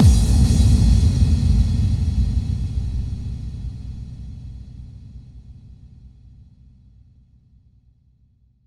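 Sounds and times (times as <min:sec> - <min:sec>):
bass drum kick with reverb: 0:00.0 - 0:05.6.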